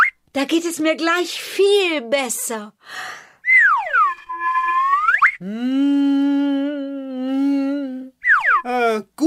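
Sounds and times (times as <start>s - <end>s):
whistle tone: 0.0s - 0.2s, 3.4s - 5.4s, 8.2s - 8.7s
speech: 0.4s - 3.2s, 5.4s - 6.6s.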